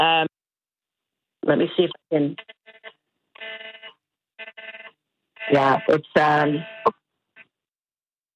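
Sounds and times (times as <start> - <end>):
speech: 1.5 - 2.6, 5.5 - 7.0
emergency alert tones on several mobile phones: 2.4 - 6.9.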